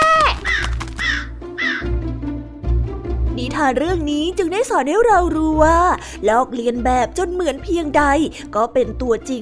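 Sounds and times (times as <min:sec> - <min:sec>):
crow cawing: 0:00.2 - 0:02.0
speech: 0:03.6 - 0:09.4.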